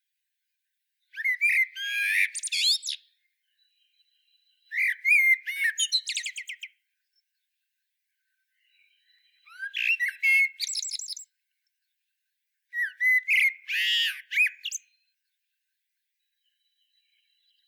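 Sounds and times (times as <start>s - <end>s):
common blackbird singing: 1.2s - 6.8s, 8.5s - 11.3s, 12.7s - 15.1s.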